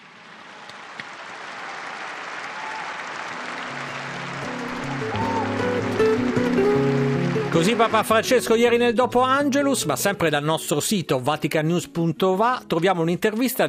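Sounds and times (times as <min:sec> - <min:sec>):
big applause for grandparents: 0:00.0 - 0:08.8
speech: 0:07.6 - 0:13.6.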